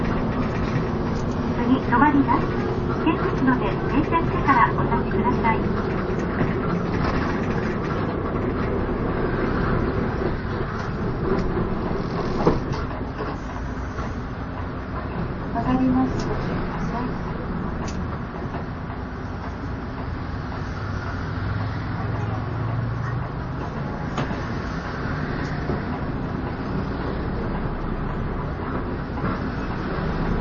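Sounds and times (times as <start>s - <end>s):
Hino Blue Ribbon bus running: 0.0s - 30.4s
bus onboard announcement over speaker: 1.6s - 5.7s.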